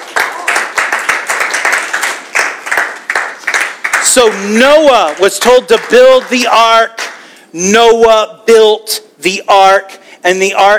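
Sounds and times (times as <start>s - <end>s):
audience clapping hands: 0.0s - 7.3s
speech: 4.2s - 10.7s.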